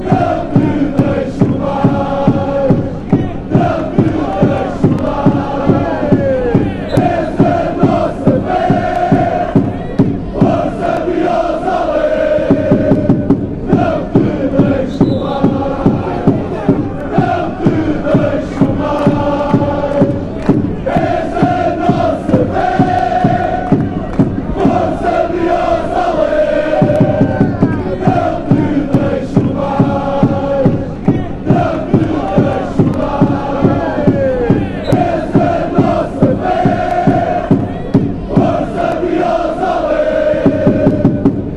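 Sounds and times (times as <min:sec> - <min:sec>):
chant: 0:00.0 - 0:41.5.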